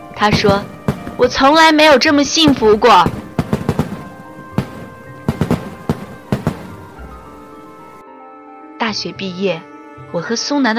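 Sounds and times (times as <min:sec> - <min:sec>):
fireworks and firecrackers exploding: 0:00.0 - 0:08.0
speech: 0:00.2 - 0:03.2, 0:08.9 - 0:10.7.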